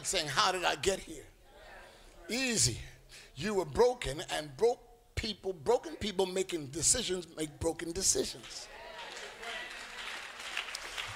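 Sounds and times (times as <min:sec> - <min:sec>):
speech: 0:00.1 - 0:01.3, 0:02.3 - 0:08.8
audience clapping: 0:08.3 - 0:11.1.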